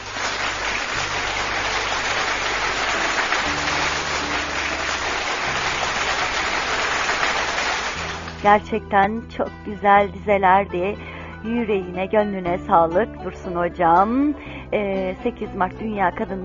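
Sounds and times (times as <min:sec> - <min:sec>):
applause after a poetry reading: 0:00.0 - 0:08.5
speech: 0:08.4 - 0:16.4.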